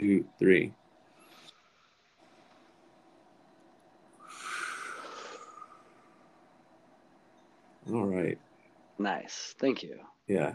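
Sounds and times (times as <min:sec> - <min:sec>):
speech: 0:00.0 - 0:00.8, 0:07.9 - 0:08.4, 0:09.0 - 0:10.5
deep calming breath drawn in through the lungs: 0:04.2 - 0:06.2.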